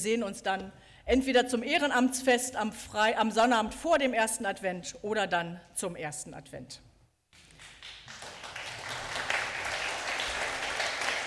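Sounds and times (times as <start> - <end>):
speech: 0.0 - 6.9
applause: 7.4 - 11.2.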